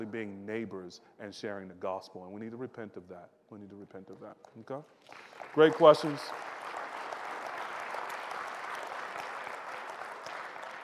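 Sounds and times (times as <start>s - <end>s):
speech: 0.0s - 6.6s
audience clapping: 4.0s - 10.8s.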